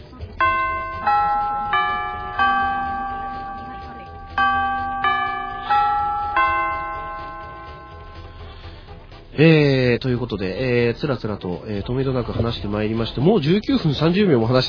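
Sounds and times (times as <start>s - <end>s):
bright electronic chime playing four-note phrases: 0.4s - 8.9s
speech: 9.4s - 14.6s.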